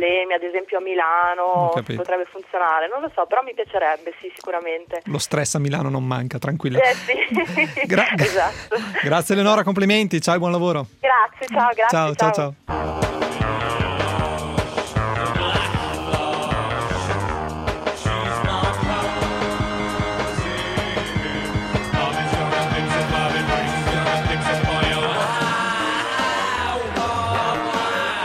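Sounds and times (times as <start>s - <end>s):
speech: 0.0s - 13.2s
laughter: 6.8s - 9.3s
music from a promotional film trailer: 12.6s - 28.2s.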